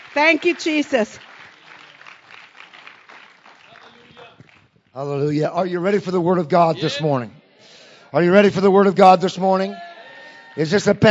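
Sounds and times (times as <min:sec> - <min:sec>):
congregation hand clapping in a Pentecostal church service: 0:00.0 - 0:05.3
speech: 0:00.2 - 0:01.3, 0:05.0 - 0:07.4, 0:08.1 - 0:09.9, 0:10.6 - 0:11.0.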